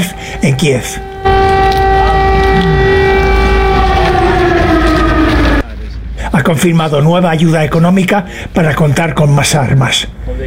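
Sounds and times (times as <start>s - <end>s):
air raid alarms sounding: 0.0s - 5.7s
speech: 0.6s - 2.8s, 6.4s - 10.4s
low rumble: 0.9s - 5.8s.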